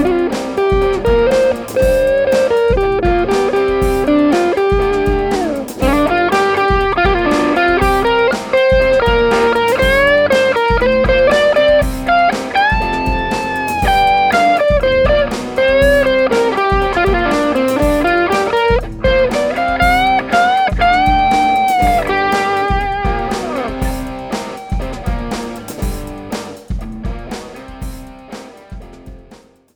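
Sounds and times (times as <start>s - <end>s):
electric guitar through an overdrive pedal: 0.0s - 29.3s.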